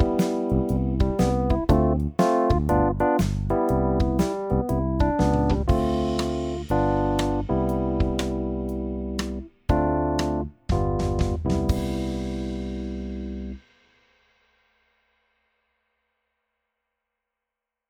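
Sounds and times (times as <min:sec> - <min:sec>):
jazz cadence: 0:00.0 - 0:13.6.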